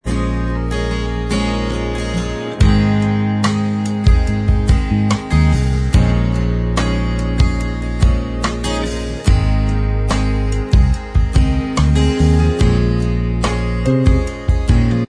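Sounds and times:
instrumental music: 0:00.0 - 0:15.0.

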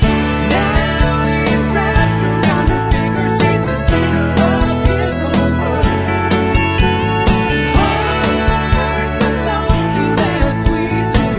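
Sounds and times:
backing vocals track: 0:00.1 - 0:11.3.

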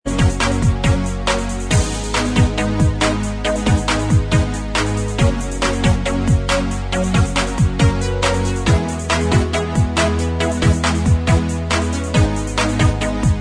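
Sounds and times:
instrumental music: 0:00.1 - 0:13.3.

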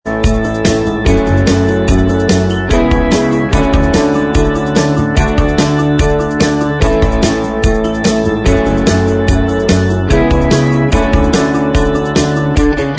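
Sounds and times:
instrumental backing track: 0:00.0 - 0:12.9.

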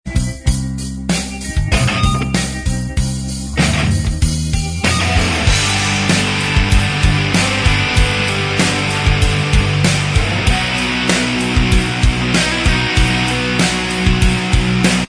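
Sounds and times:
instrumental backing track: 0:00.1 - 0:15.0.

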